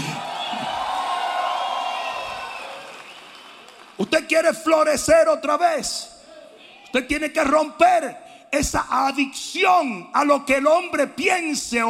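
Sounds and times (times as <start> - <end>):
audience shouting and cheering: 0.0 - 3.8
speech: 4.0 - 6.1, 6.9 - 11.8.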